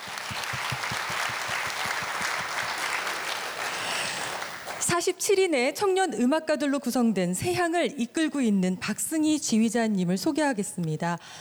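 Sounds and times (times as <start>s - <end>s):
audience applause: 0.0s - 4.8s
speech: 5.0s - 11.3s.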